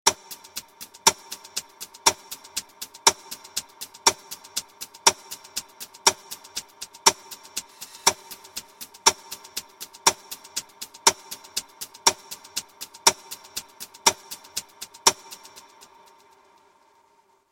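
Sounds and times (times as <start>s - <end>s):
clock: 0.1s - 16.2s.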